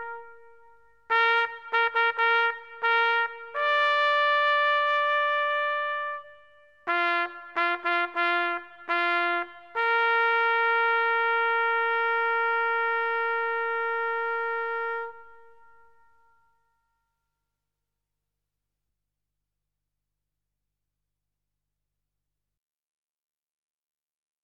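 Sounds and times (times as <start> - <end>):
military trumpet call: 0.0 - 15.8.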